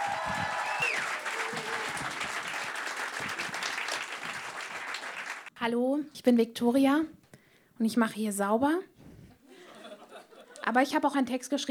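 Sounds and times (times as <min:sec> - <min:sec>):
audience applause: 0:00.0 - 0:05.5
speech: 0:05.6 - 0:07.2, 0:07.8 - 0:08.9, 0:10.7 - 0:11.6
laughter: 0:09.5 - 0:10.7.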